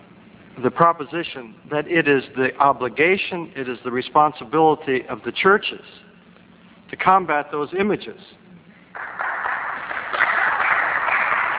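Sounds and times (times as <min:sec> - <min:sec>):
speech: 0:00.6 - 0:06.0, 0:06.9 - 0:08.4
audience applause: 0:09.0 - 0:11.5.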